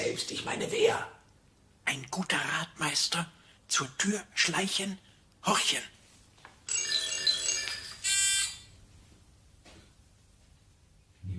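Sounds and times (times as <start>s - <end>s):
speech: 0.1s - 1.2s, 1.9s - 6.0s
doorbell ringing: 6.7s - 8.6s.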